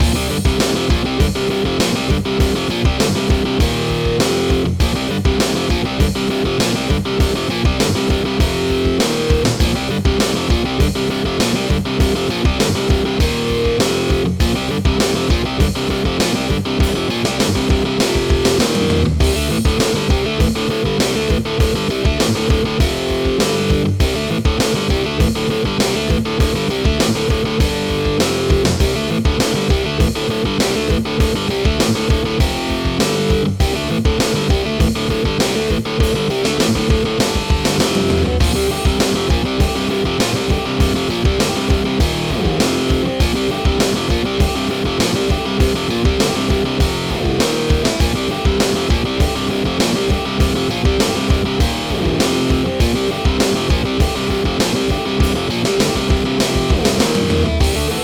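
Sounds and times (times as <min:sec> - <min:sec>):
electric guitar mayhem: 0:00.0 - 0:58.0.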